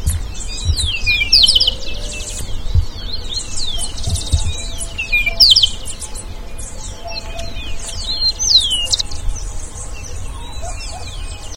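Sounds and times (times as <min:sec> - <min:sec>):
faint low thumps: 0:00.0 - 0:06.2
birds calling: 0:00.0 - 0:11.5.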